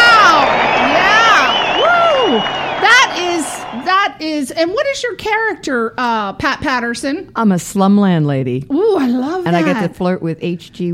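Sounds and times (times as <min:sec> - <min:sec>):
audience applause: 0:00.0 - 0:04.2
speech: 0:04.2 - 0:10.9.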